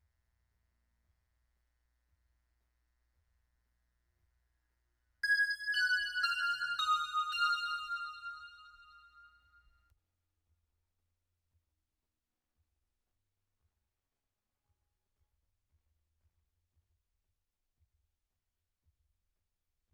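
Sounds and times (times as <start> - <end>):
synth bells: 5.2 - 9.4.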